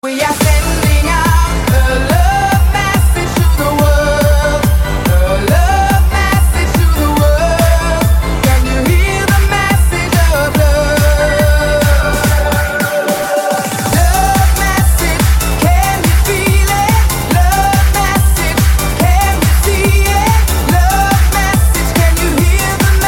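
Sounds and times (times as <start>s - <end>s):
disco music: 0.0s - 23.0s.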